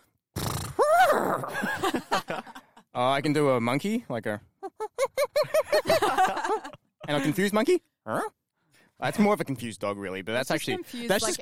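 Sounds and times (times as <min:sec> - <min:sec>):
person imitating a horse: 0:00.4 - 0:01.6
speech: 0:01.3 - 0:02.4, 0:03.0 - 0:04.5, 0:07.1 - 0:08.4, 0:09.0 - 0:11.4
laughter: 0:01.5 - 0:02.8, 0:04.7 - 0:07.5.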